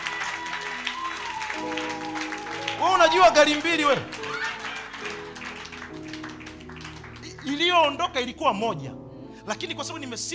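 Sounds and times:
audience applause at a church service: 0.0s - 8.2s
speech: 2.9s - 4.3s, 7.5s - 10.3s.

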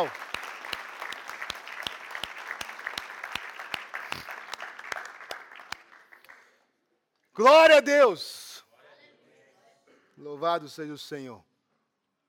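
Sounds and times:
speech: 0.0s - 0.3s, 7.4s - 8.4s, 10.2s - 11.5s
audience clapping in unison: 0.0s - 6.7s.

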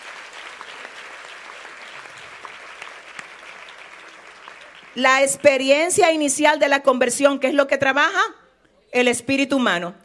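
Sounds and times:
audience applauding: 0.0s - 5.6s
speech: 5.0s - 10.0s.

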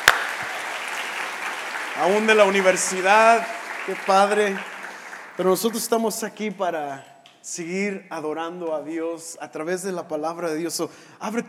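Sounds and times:
crowd clapping: 0.0s - 6.4s
speech: 2.0s - 4.7s, 5.4s - 11.4s.

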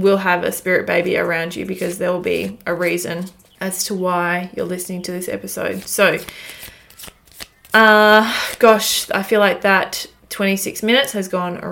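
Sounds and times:
speech: 0.0s - 6.6s, 7.7s - 11.7s
Spirit Baby Oracle card deck riffling: 1.7s - 3.6s, 5.7s - 7.8s.

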